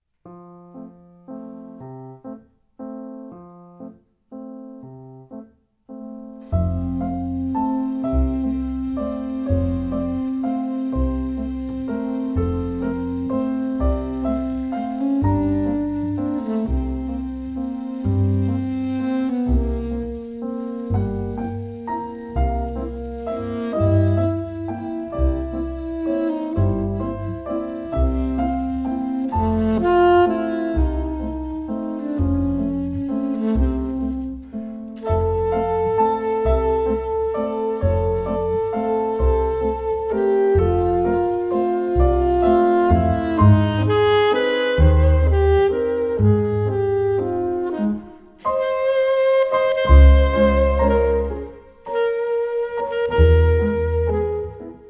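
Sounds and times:
waltz music: 0.3s - 54.8s.

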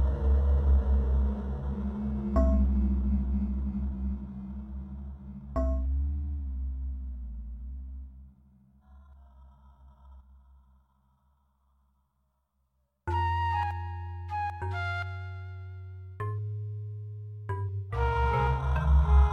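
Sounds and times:
ambient MIDI music: 0.0s - 8.6s, 13.1s - 19.3s.

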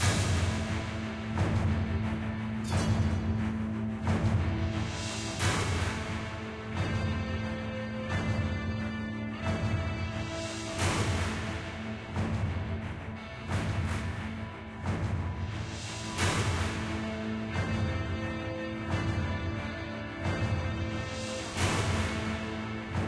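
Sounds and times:
boss battle music: 0.0s - 23.0s.

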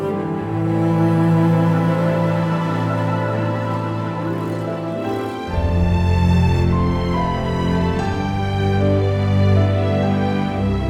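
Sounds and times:
intro music: 0.1s - 10.8s.

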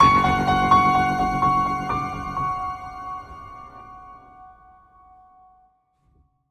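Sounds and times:
musical stinger: 0.0s - 4.9s.

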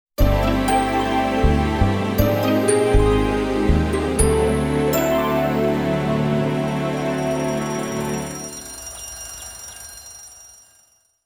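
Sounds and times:
jingle: 0.2s - 11.0s.

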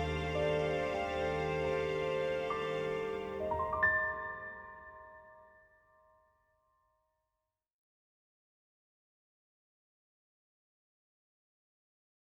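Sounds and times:
orchestra instrumental: 0.0s - 4.2s.

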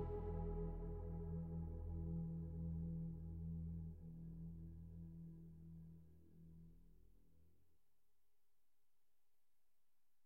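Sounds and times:
ambient synth pad: 0.0s - 4.8s.

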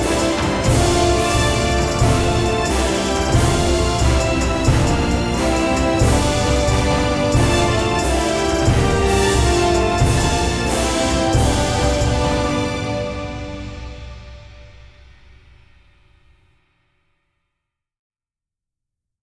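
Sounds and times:
instrumental horn music: 0.0s - 14.9s.

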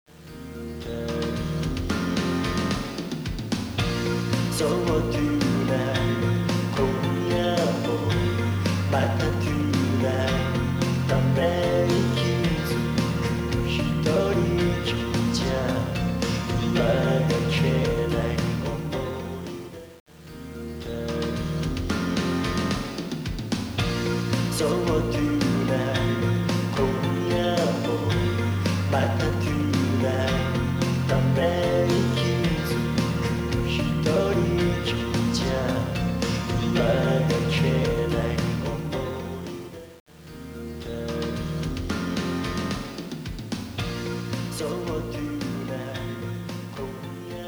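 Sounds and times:
karaoke backing music: 0.3s - 47.4s.

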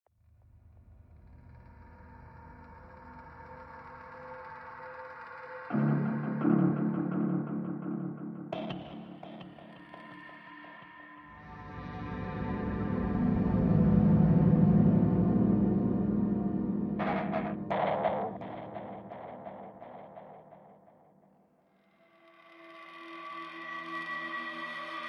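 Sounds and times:
ambient music: 5.6s - 21.1s.

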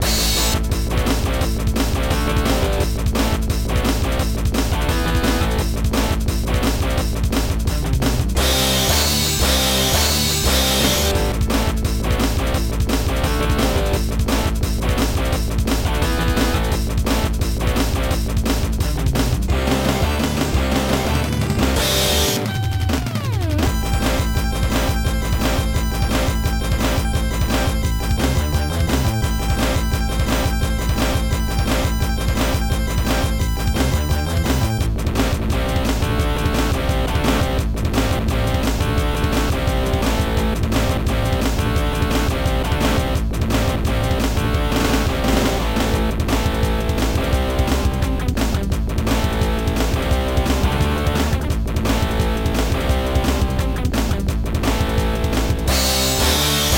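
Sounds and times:
arcade multiplayer race background music: 0.0s - 56.7s.

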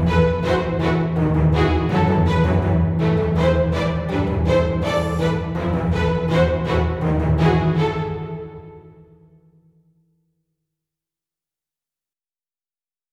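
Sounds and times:
medieval battle march music: 0.2s - 7.9s.

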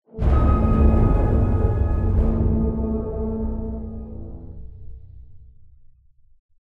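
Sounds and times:
explosion music stinger: 0.1s - 5.4s.

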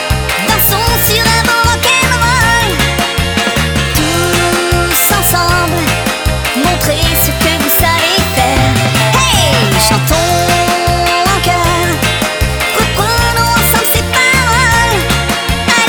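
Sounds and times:
French rock waltz music: 0.0s - 15.8s.

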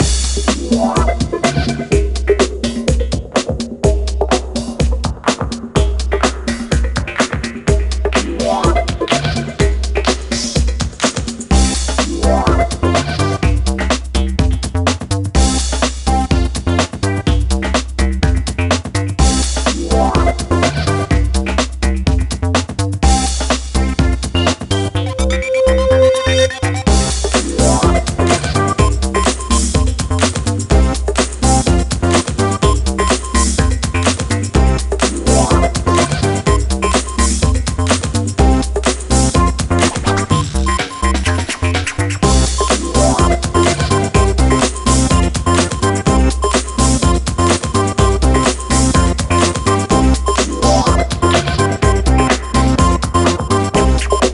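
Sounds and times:
disco music: 0.0s - 54.3s.

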